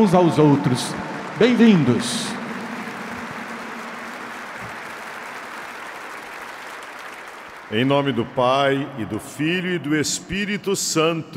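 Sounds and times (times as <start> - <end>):
speech: 0.0 - 2.4, 7.7 - 11.3
audience applause: 0.0 - 8.5.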